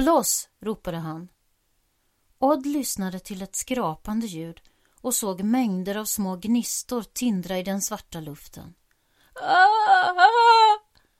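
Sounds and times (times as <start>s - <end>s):
speech: 0.0s - 1.4s, 2.4s - 8.8s, 9.4s - 10.8s
unhappy scream in the dark: 9.4s - 10.8s.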